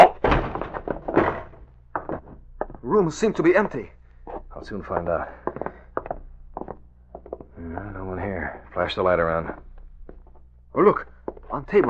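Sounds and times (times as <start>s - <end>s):
door being kicked open: 0.0s - 1.6s
speech: 2.9s - 4.0s, 4.6s - 5.4s, 7.6s - 9.6s, 10.8s - 11.8s.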